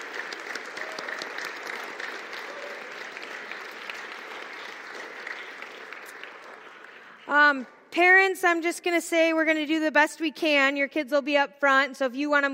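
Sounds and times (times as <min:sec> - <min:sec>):
church audience applause: 0:00.0 - 0:07.8
speech: 0:07.3 - 0:12.5.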